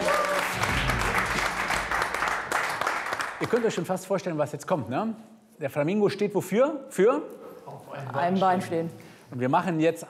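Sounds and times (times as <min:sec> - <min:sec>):
short round of applause from a small group: 0:00.0 - 0:03.9
speech: 0:03.4 - 0:10.0.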